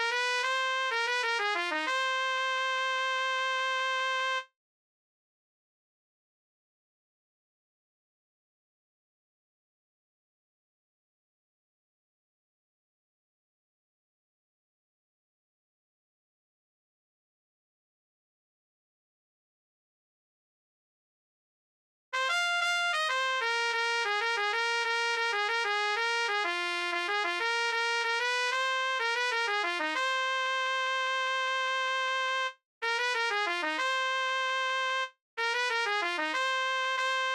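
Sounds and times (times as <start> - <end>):
trumpet: 0.0 - 4.5, 22.2 - 37.3.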